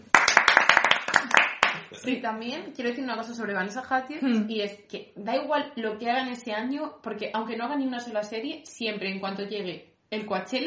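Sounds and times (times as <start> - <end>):
applause: 0.0 - 2.0
speech: 2.0 - 10.6.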